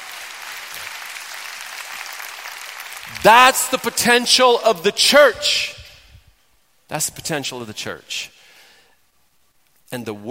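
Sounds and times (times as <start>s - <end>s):
audience applause: 0.0s - 4.2s
speech: 3.1s - 5.8s, 6.9s - 8.4s, 9.9s - 10.2s.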